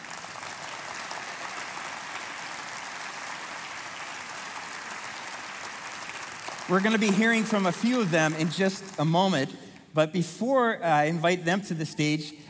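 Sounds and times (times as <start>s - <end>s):
congregation applauding at a worship service: 0.0s - 9.8s
speech: 6.7s - 12.4s.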